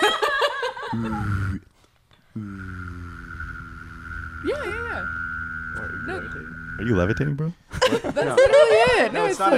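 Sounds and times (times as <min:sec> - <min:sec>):
person chuckling: 0:00.7 - 0:01.6
speech: 0:00.9 - 0:03.4, 0:04.4 - 0:05.2, 0:05.8 - 0:09.5
low buzzing throat drone: 0:00.9 - 0:07.6
person producing a high whistled tone: 0:03.2 - 0:07.5.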